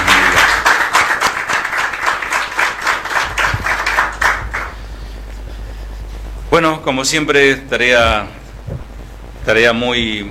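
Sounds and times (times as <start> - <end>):
audience applause: 0.0 - 4.8
speech: 6.6 - 8.4, 9.5 - 10.3.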